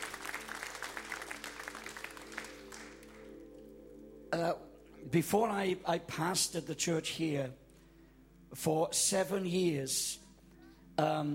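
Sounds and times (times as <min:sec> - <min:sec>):
audience applause: 0:00.0 - 0:03.4
sustained organ-like tone: 0:00.0 - 0:10.1
speech: 0:04.3 - 0:07.6, 0:08.5 - 0:10.2, 0:11.0 - 0:11.3.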